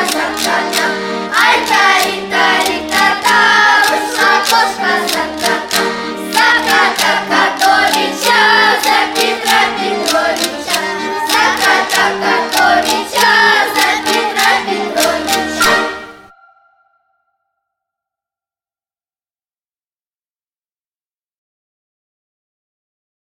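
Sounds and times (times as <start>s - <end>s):
ensemble singing a song: 0.0s - 17.0s.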